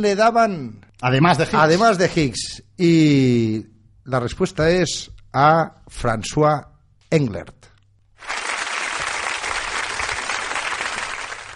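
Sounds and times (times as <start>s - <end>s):
speech: 0.0s - 7.6s
audience applause: 8.2s - 11.5s.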